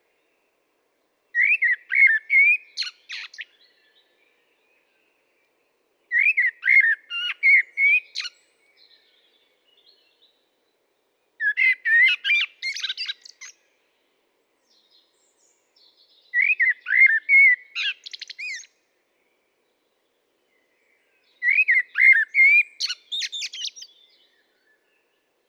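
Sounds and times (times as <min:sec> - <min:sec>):
common blackbird singing: 0:01.4 - 0:05.1, 0:06.1 - 0:10.4, 0:11.4 - 0:13.6, 0:14.7 - 0:18.7, 0:20.6 - 0:25.2.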